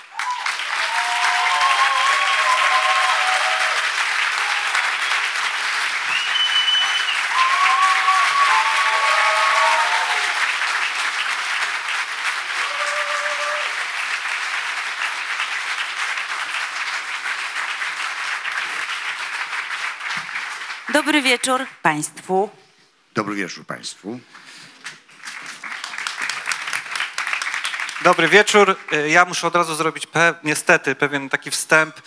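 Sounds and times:
large audience applause: 0.0s - 21.6s, 25.2s - 29.8s
faint voices and whistles: 6.1s - 8.8s
speech: 21.2s - 22.6s, 23.2s - 24.4s, 28.1s - 32.0s.

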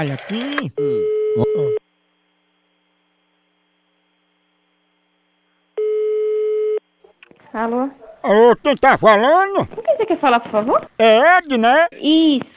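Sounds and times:
speech: 0.0s - 1.8s, 7.6s - 12.5s
telephone ringback tone while a call waits to be answered: 0.8s - 1.8s, 5.8s - 6.8s.

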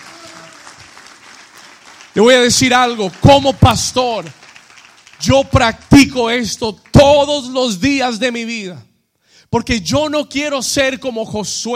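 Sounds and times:
audience applause: 0.0s - 7.0s
speech: 2.2s - 4.4s, 5.2s - 8.9s, 9.5s - 11.7s.

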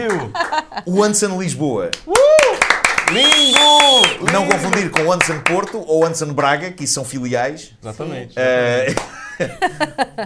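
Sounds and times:
speech: 0.0s - 2.2s, 3.1s - 10.2s
laughter: 0.2s - 1.0s, 8.9s - 10.2s
audience applause: 2.1s - 5.6s.

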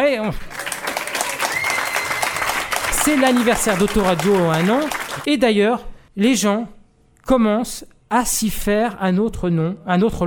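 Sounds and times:
speech: 0.1s - 0.6s, 3.0s - 10.2s
audience applauding: 0.2s - 5.3s.

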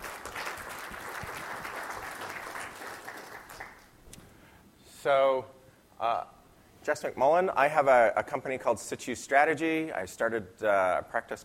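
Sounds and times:
audience applause: 0.0s - 4.0s
speech: 5.0s - 11.4s.

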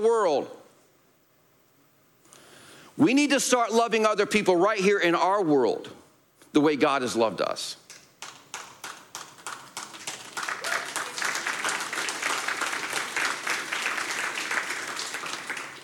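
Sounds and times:
speech: 0.0s - 0.6s, 3.0s - 7.8s
audience clapping: 7.9s - 15.8s.

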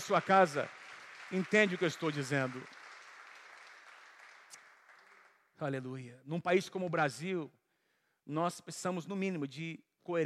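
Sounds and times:
speech: 0.0s - 2.8s, 5.6s - 7.6s, 8.2s - 10.2s
audience applause: 0.0s - 5.5s.

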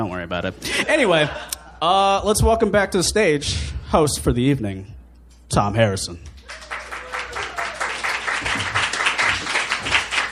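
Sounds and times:
speech: 0.0s - 6.3s
crowd applauding: 6.3s - 10.3s.

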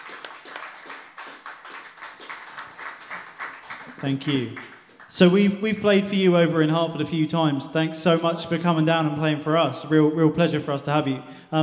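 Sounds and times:
small round of applause: 0.0s - 5.2s
speech: 4.0s - 11.6s.

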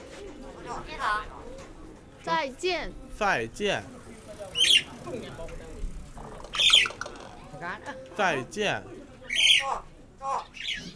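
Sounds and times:
speech: 0.7s - 1.4s, 2.2s - 4.0s, 4.7s - 5.7s, 7.6s - 9.0s
pet bird calling: 4.5s - 5.0s, 6.2s - 7.3s, 9.3s - 10.9s.

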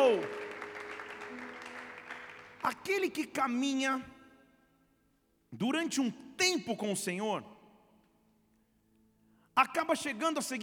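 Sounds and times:
audience applauding: 0.0s - 3.3s
speech: 2.6s - 4.2s, 5.5s - 7.5s, 9.6s - 10.6s.

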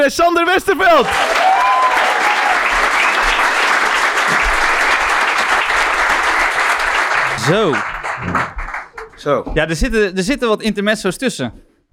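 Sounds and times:
speech: 0.0s - 1.4s, 7.4s - 8.3s, 9.2s - 11.6s
loud audience applause: 1.0s - 9.2s.

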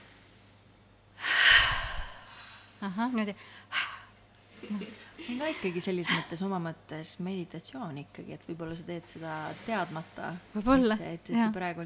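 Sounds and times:
breath in through the nose and out through the mouth in a calming exercise: 1.2s - 2.8s
speech: 2.8s - 3.9s, 4.6s - 11.8s.

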